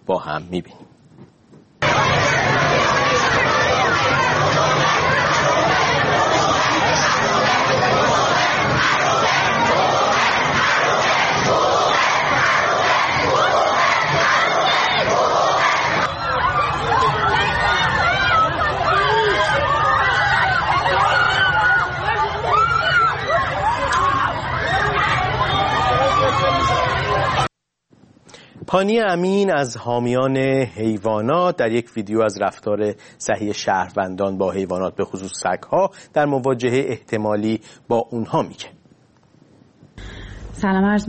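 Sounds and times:
speech: 0:00.1 - 0:00.9, 0:28.7 - 0:38.8, 0:40.6 - 0:41.0
babble of voices: 0:01.8 - 0:27.5
protest crowd chanting and shouting: 0:01.8 - 0:27.5.

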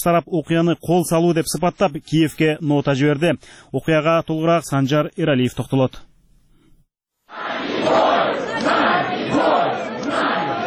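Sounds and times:
speech: 0:00.0 - 0:06.1
protesters chanting outside the Russian embassy in Kyiv: 0:07.3 - 0:10.6.

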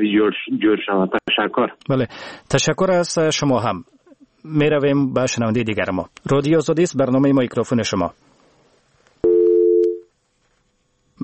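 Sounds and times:
speech: 0:00.0 - 0:08.3
telephone busy signal after a caller's line was cut off: 0:09.2 - 0:10.1.

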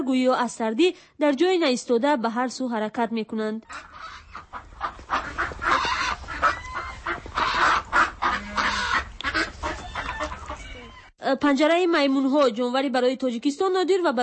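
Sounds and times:
speech: 0:00.0 - 0:04.2, 0:11.2 - 0:14.2
ducks calling at a snowy zoo: 0:03.7 - 0:11.1.

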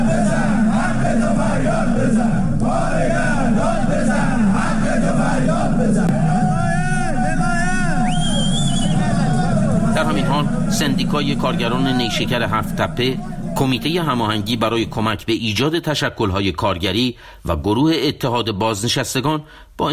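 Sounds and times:
striking appliance factory workers chanting protest slogans at a rally in Alvand, Qazvin: 0:00.0 - 0:14.2
speech: 0:10.8 - 0:19.9.

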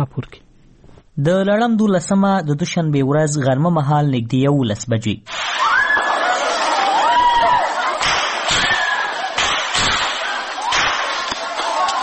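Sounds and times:
speech: 0:00.0 - 0:00.4, 0:01.2 - 0:05.4
people shouting: 0:05.3 - 0:12.0
students screaming during the attack on Kabul University: 0:05.3 - 0:12.0
gunshots during the attack on Kabul University: 0:08.0 - 0:11.8.

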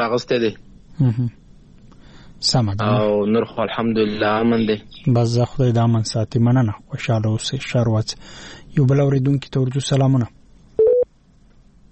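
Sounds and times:
speech: 0:00.0 - 0:01.4, 0:02.4 - 0:10.4
telephone busy tone after a caller's line dropped: 0:10.8 - 0:11.1.

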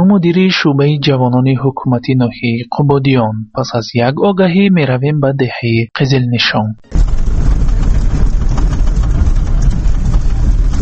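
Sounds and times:
speech: 0:00.0 - 0:07.2
large vehicle engine rumbling: 0:06.9 - 0:10.8.

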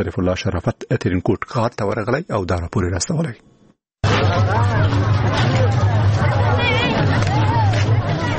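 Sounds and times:
speech: 0:00.0 - 0:03.6
crowd of festival-goers at Eid fair in Tarinkot city Afghanistan: 0:04.0 - 0:08.3.

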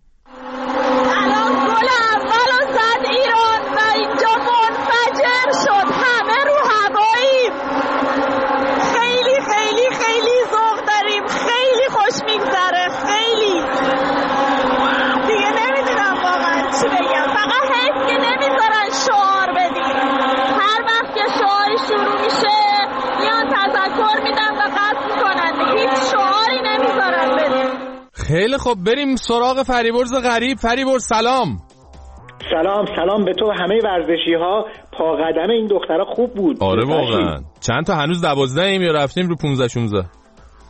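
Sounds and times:
stadium crowd after the first goal: 0:00.3 - 0:29.0
speech: 0:28.7 - 0:31.7, 0:32.5 - 0:40.2.

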